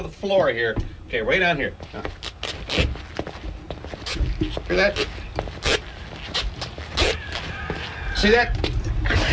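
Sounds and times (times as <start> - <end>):
speech: 0.0 - 2.9, 4.5 - 5.2, 8.2 - 8.7
sneaker squeaking on carpeted floor: 1.8 - 8.4.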